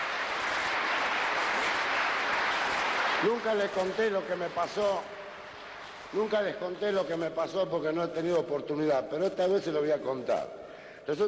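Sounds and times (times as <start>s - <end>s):
audience applause: 0.0s - 6.4s
speech: 3.2s - 5.2s, 6.1s - 11.2s.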